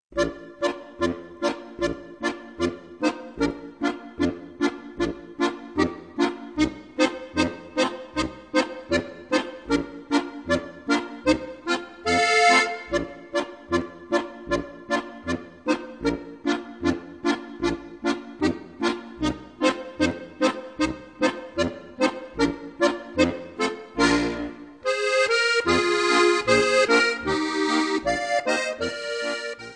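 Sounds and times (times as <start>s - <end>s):
polka music: 0.1s - 29.7s.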